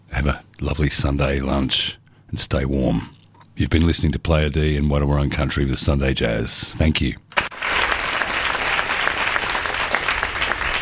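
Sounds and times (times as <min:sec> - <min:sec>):
speech: 0:00.2 - 0:07.2
audience applause: 0:07.4 - 0:10.8.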